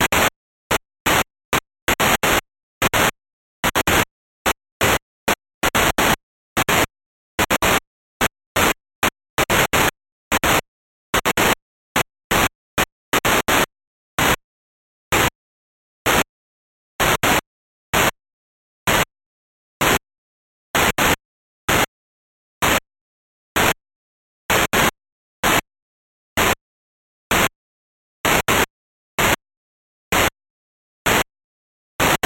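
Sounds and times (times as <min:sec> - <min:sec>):
noise: 0:00.0 - 0:15.4, 0:16.0 - 0:16.4, 0:17.0 - 0:18.2, 0:18.8 - 0:19.2, 0:19.8 - 0:20.1, 0:20.7 - 0:22.0, 0:22.6 - 0:22.9, 0:23.5 - 0:23.8, 0:24.5 - 0:25.7, 0:26.3 - 0:26.7, 0:27.3 - 0:27.6, 0:28.2 - 0:29.5, 0:30.1 - 0:30.4, 0:31.0 - 0:31.3, 0:32.0 - 0:32.2.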